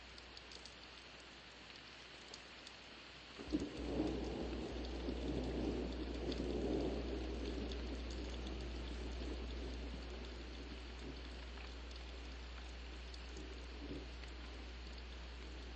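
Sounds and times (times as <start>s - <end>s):
early morning thunderstorm: 3.4s - 15.7s.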